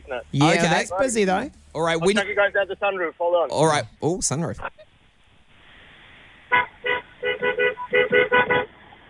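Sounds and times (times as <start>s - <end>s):
speech: 0.1s - 4.8s
car horn beeps: 6.5s - 8.7s.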